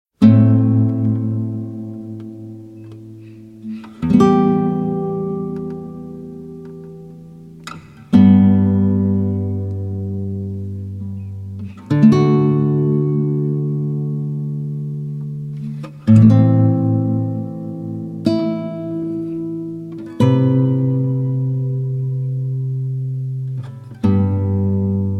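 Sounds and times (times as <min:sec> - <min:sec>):
guitar: 0:00.2 - 0:25.1.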